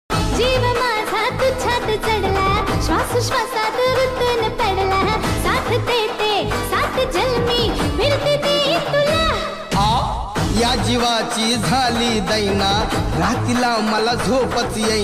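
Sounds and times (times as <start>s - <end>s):
Marathi dance song DJ mix: 0.1s - 15.0s.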